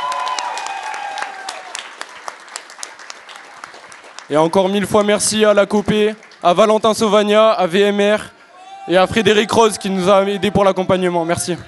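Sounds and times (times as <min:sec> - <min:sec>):
audience applauding the performing artists: 0:00.0 - 0:08.7
speech: 0:04.3 - 0:11.6.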